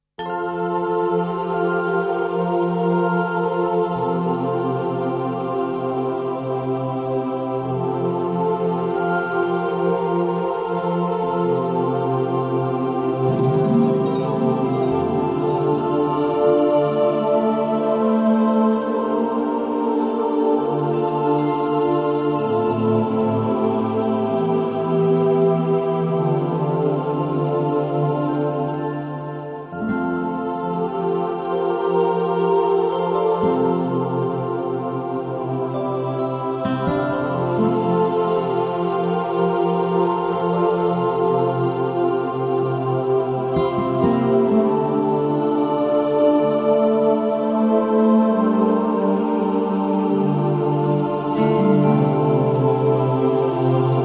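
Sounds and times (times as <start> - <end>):
angelic atmospheres: 0.2 - 54.0.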